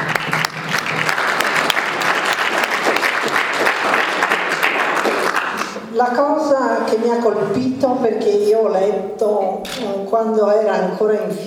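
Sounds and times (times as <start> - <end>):
applause at a public event celebrating a novel: 0.0 - 5.8
speech: 6.0 - 11.4.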